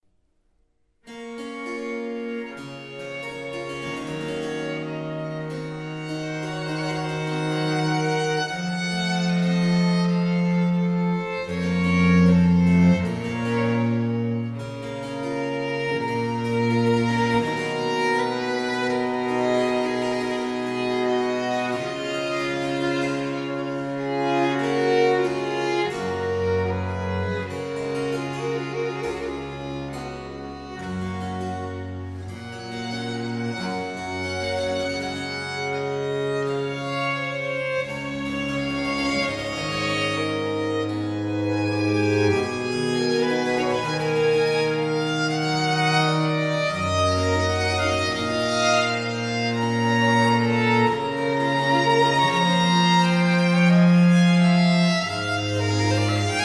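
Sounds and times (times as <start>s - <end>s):
sonata in E minor, adagio movement: 1.0s - 56.4s.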